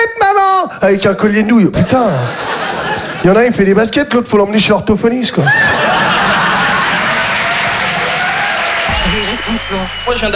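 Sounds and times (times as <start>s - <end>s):
speech: 0.8s - 6.0s, 9.0s - 10.3s
laughter: 1.8s - 3.5s, 5.3s - 10.3s
audience applause: 5.4s - 10.3s.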